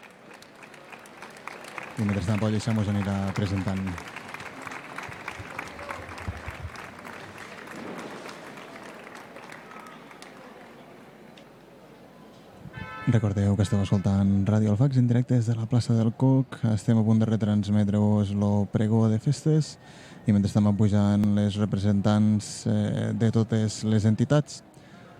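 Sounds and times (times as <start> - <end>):
crowd applause welcoming representatives: 0.0 - 11.2
speech: 2.0 - 4.2, 13.1 - 24.7.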